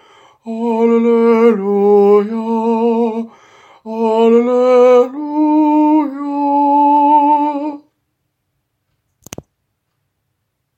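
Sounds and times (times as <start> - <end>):
soprano voice: 0.4 - 7.9.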